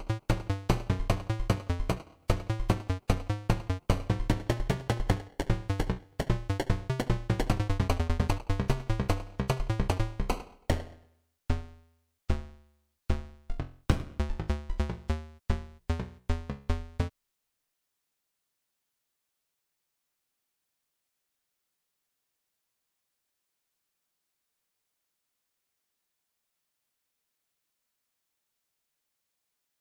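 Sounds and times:
8-bit music: 0:00.0 - 0:17.1.

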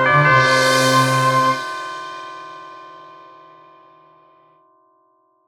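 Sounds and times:
victory jingle: 0:00.1 - 0:02.3.

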